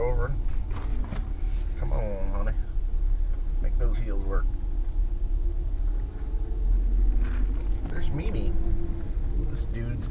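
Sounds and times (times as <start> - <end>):
car engine grinding while driving: 0.0 - 10.0
speech: 4.0 - 4.6, 8.1 - 10.0.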